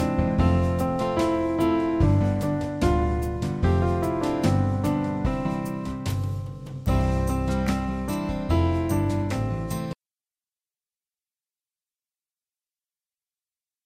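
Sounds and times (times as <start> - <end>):
instrumental music: 0.0 - 10.0.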